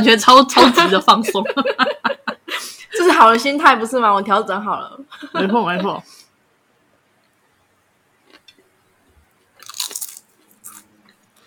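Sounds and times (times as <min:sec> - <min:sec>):
speech: 0:00.0 - 0:06.2
crunchy potato chips being bitten and chewed: 0:09.5 - 0:11.4.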